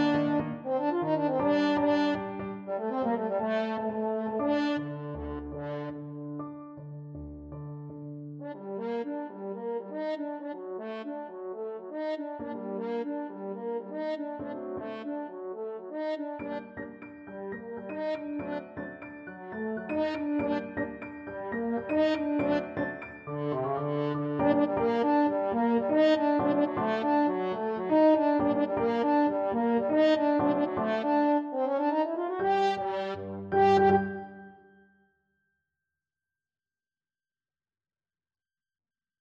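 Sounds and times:
french horn: 0.0 - 6.0, 8.4 - 16.9, 17.6 - 34.6.

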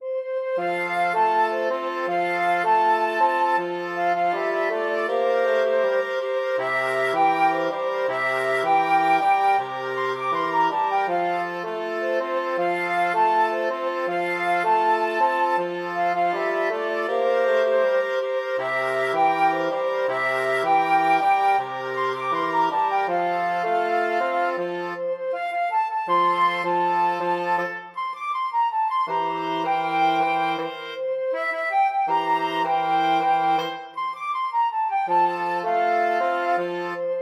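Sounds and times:
flexible mixed ensemble of 4 players: 0.3 - 37.2.

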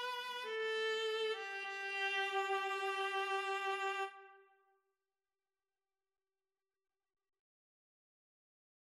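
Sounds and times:
viola duet: 0.0 - 4.3.

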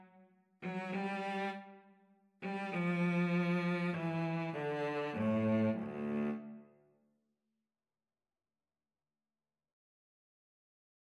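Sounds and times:
violin and cello duet: 0.6 - 1.7, 2.4 - 6.6.

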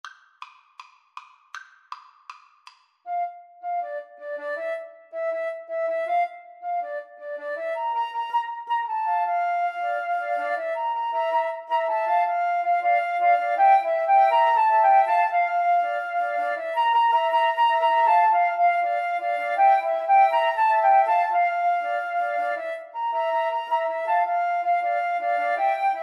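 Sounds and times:
flute trio playing: 3.1 - 26.0.

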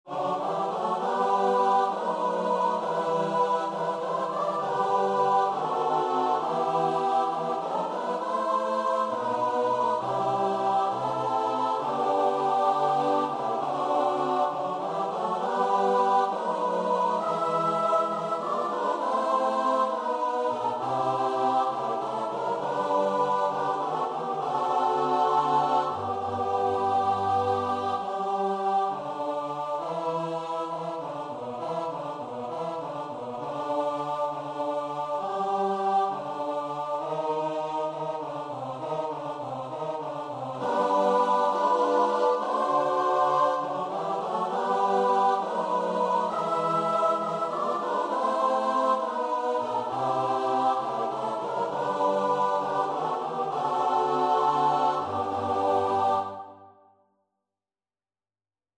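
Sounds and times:
choir singing: 0.0 - 57.0.

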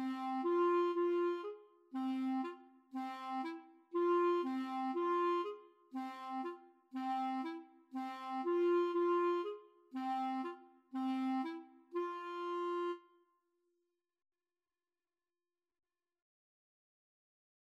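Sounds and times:
clarinet duet playing a bulgarish folk dance: 0.0 - 13.2.

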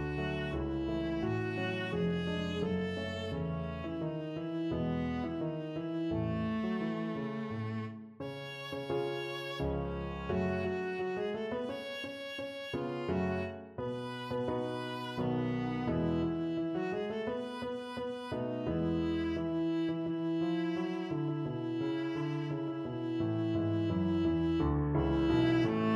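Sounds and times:
viola melody: 0.0 - 25.9.

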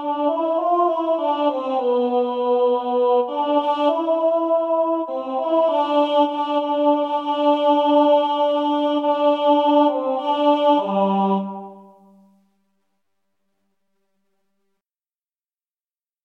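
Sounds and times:
choir singing: 0.0 - 12.4.

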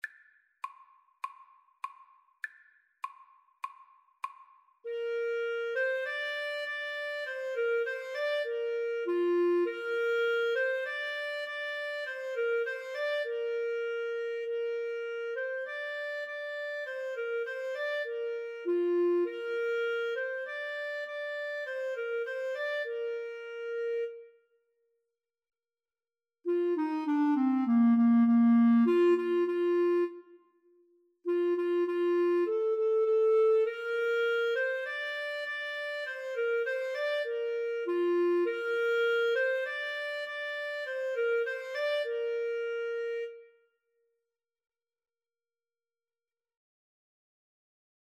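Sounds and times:
clarinet duet: 4.9 - 24.5, 26.5 - 43.7.

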